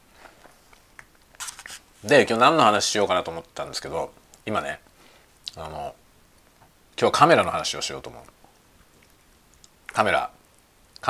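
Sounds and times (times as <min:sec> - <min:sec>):
crunchy chewing while eating lunch: 0:00.7 - 0:01.9
speech: 0:02.0 - 0:04.8, 0:05.6 - 0:06.0, 0:07.0 - 0:08.4, 0:10.0 - 0:10.4.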